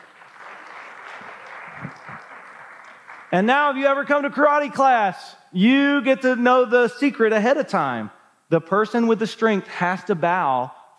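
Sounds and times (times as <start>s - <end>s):
crowd applause: 0.0s - 3.5s
speech: 3.3s - 10.8s.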